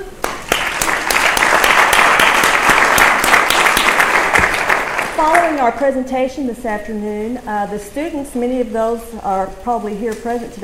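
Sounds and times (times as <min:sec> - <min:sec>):
audience applause: 0:00.2 - 0:05.6
speech: 0:05.2 - 0:10.6.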